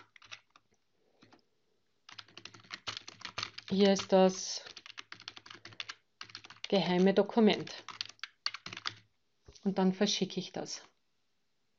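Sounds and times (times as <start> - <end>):
computer keyboard typing as an email is written: 0.0 - 1.4, 2.1 - 9.1
speech: 3.7 - 4.7, 6.7 - 7.9, 9.6 - 10.9.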